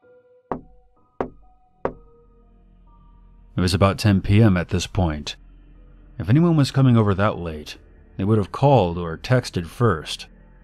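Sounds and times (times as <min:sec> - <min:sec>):
knocking on a door: 0:00.5 - 0:02.1
faint steady hum of tones: 0:02.5 - 0:10.6
speech: 0:03.6 - 0:05.4, 0:06.2 - 0:10.3.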